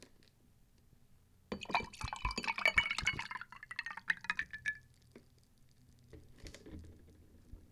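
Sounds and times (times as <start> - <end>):
ice rattling: 1.5 - 4.8.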